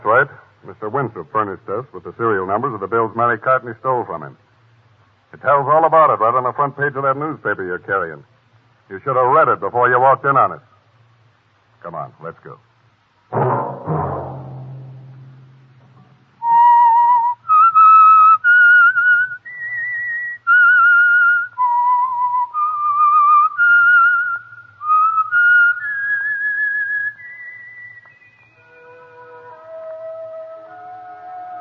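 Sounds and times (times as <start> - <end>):
speech: 0.0 - 4.5, 5.3 - 8.3, 8.9 - 10.7, 11.8 - 12.7
low rumbling hit: 13.3 - 16.6
whistled theme tune melody: 16.4 - 31.5.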